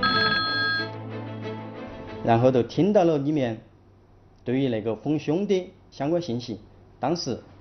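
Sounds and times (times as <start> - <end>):
telephone ringing: 0.0 - 0.9
speech: 2.2 - 3.7, 4.4 - 7.5.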